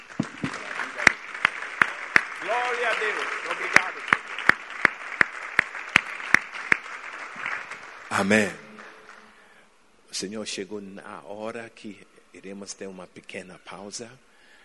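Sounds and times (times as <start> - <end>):
audience applauding: 0.0 - 9.3
speech: 8.2 - 8.6, 10.2 - 14.3.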